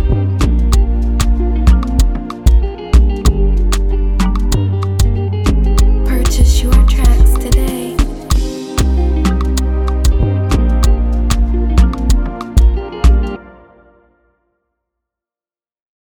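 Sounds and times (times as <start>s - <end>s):
music in D major: 0.0s - 14.8s.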